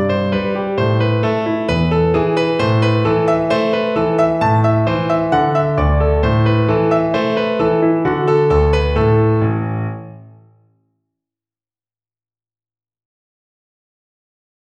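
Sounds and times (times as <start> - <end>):
piano accompaniment: 0.0 - 10.7.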